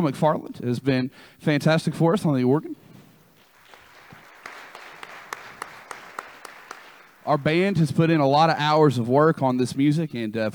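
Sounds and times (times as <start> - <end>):
speech: 0.0 - 2.8, 7.2 - 10.5
audience applause: 3.4 - 7.5.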